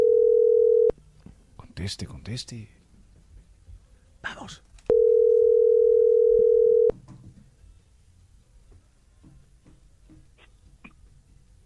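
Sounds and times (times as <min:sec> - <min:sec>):
telephone dial tone: 0:00.0 - 0:00.9, 0:04.9 - 0:06.9
faint low noise: 0:00.0 - 0:11.6
speech: 0:01.8 - 0:02.8.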